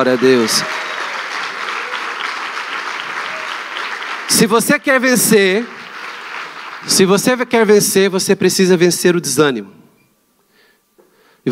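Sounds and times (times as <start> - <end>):
speech: 0.0 - 0.9, 4.3 - 5.8, 6.8 - 9.8
audience applause: 0.0 - 7.5.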